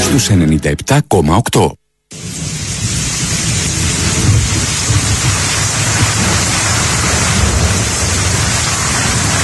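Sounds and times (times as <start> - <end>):
speech: 0.2 - 2.4
rain: 2.1 - 9.4
thunder: 2.2 - 9.4.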